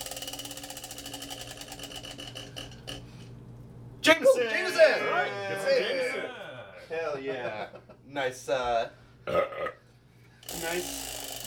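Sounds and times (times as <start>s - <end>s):
prize wheel ticking as it is spun in a drinking game: 0.0s - 2.7s, 10.4s - 11.4s
speech: 4.3s - 9.4s, 10.6s - 11.1s.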